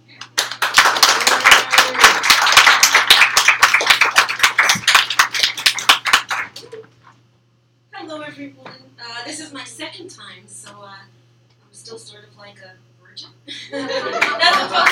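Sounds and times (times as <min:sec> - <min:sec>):
audience applause: 0:00.4 - 0:06.7, 0:14.1 - 0:14.9
speech: 0:11.9 - 0:14.8
laughter: 0:13.5 - 0:14.9.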